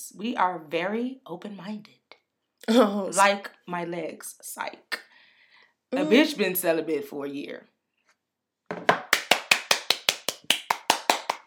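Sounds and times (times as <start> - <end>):
speech: 0.0 - 2.0, 2.6 - 5.1, 5.9 - 7.7
person clapping hands: 8.8 - 11.4.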